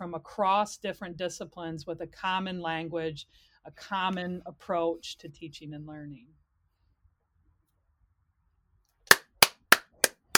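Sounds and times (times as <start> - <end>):
speech: 0.0 - 6.4
person clapping hands: 9.1 - 10.3.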